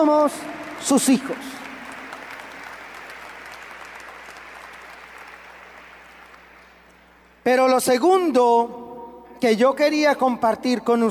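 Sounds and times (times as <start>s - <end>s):
speech: 0.0s - 1.6s, 7.4s - 11.0s
audience applause: 0.0s - 6.9s.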